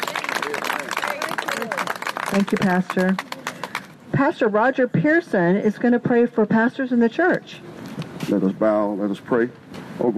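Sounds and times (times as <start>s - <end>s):
people cheering: 0.0s - 3.6s
audience clapping: 0.0s - 3.9s
speech: 2.3s - 3.3s, 4.2s - 7.7s, 8.3s - 10.1s.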